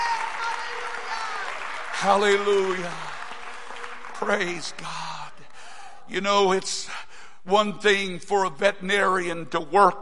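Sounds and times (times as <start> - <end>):
audience clapping hands: 0.0 - 5.6
speech: 2.0 - 3.1, 4.2 - 5.1, 6.1 - 10.0.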